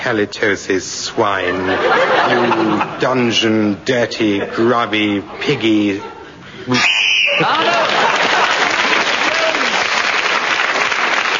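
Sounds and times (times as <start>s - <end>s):
speech: 0.0s - 7.8s
laughter: 1.4s - 3.4s, 4.2s - 9.4s
game show whistle: 6.7s - 7.6s
audience applause: 7.4s - 11.3s.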